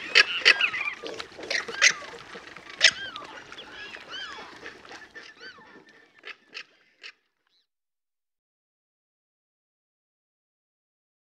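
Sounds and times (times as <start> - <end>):
jabiru harsh harmonic squawks in the Pantanal: 0.0 - 7.2.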